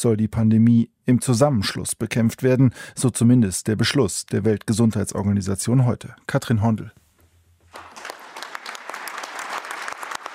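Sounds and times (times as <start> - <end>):
speech: 0.0 - 7.0
delegates applauding in Geneva: 7.7 - 10.3.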